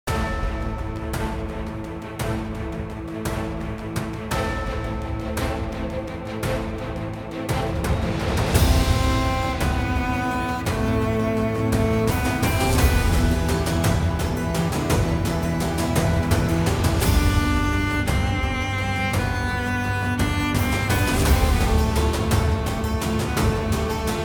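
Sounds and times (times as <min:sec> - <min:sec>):
music: 0:00.0 - 0:24.2.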